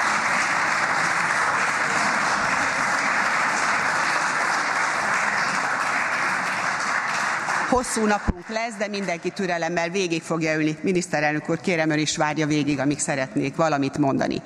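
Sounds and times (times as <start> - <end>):
applause in a parliamentary chamber: 0.0 - 9.7
speech: 7.8 - 14.4.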